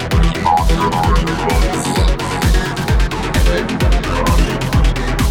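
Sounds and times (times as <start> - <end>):
robotic electronic sounds: 0.1 - 5.1.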